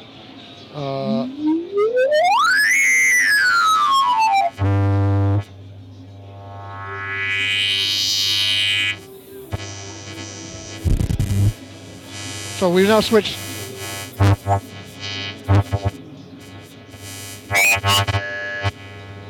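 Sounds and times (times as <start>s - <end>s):
speech: 0.7s - 1.2s, 12.6s - 13.5s
electronic audio filters switching with tonal sweeps: 1.4s - 5.5s, 6.2s - 19.2s
steady low hum: 6.1s - 8.9s, 9.5s - 19.2s.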